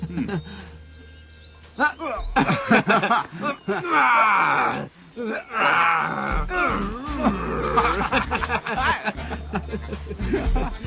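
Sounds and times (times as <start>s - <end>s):
laughter: 0.0s - 0.6s, 2.0s - 4.4s, 7.0s - 10.8s
bears fighting with growls and snarls: 3.6s - 8.5s.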